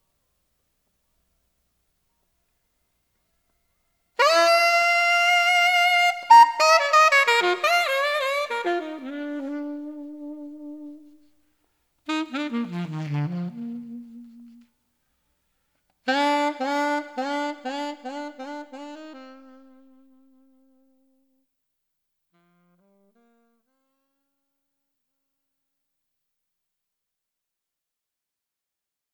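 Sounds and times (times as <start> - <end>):
alto saxophone: 4.2 - 11.4, 12.0 - 14.7, 16.0 - 21.1, 22.4 - 24.1.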